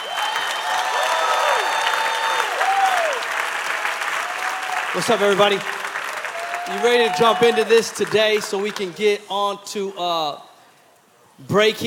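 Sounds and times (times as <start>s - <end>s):
loud round of applause: 0.0s - 9.0s
speech: 5.0s - 5.8s, 6.7s - 10.5s, 11.4s - 11.8s.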